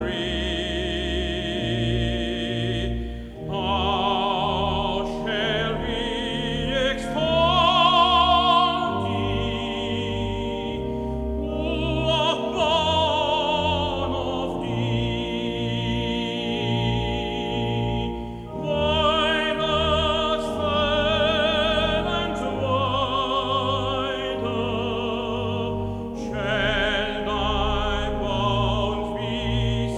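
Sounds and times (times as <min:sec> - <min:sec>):
male choir singing: 0:00.0 - 0:29.9.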